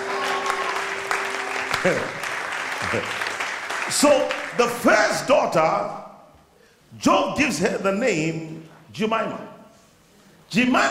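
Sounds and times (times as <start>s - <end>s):
audience clapping: 0.0s - 5.0s
speech: 1.8s - 2.2s, 2.8s - 3.2s, 3.9s - 6.0s, 6.9s - 9.5s, 10.5s - 10.8s.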